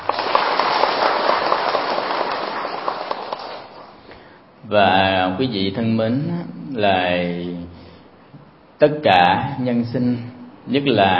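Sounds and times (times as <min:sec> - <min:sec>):
crowd applauding: 0:00.0 - 0:04.0
speech: 0:04.7 - 0:07.6, 0:08.8 - 0:11.1.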